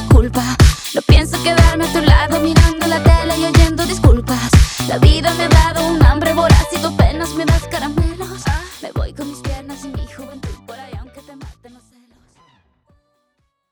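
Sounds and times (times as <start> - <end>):
intro outro music at 122 BPM: 1.1 - 10.7.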